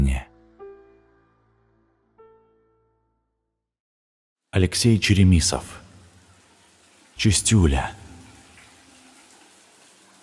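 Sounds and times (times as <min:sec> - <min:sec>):
speech: 0:04.6 - 0:05.8, 0:07.2 - 0:08.0
faulty shower running: 0:05.7 - 0:10.2.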